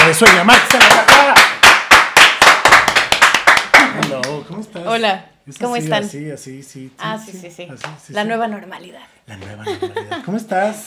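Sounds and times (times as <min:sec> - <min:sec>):
loud applause: 0:00.0 - 0:04.3
speech: 0:00.1 - 0:01.1, 0:04.9 - 0:10.8
laughter: 0:09.5 - 0:10.4.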